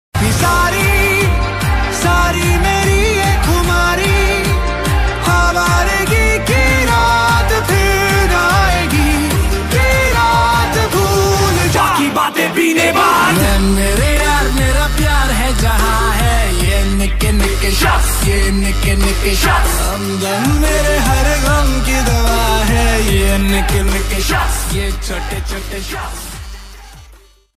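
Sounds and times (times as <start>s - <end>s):
rap ringtone: 0.2s - 27.5s.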